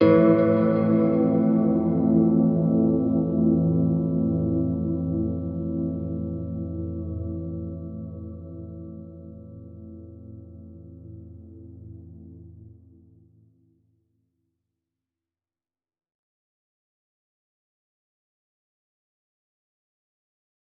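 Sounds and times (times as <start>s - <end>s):
guitar: 0.0s - 13.2s.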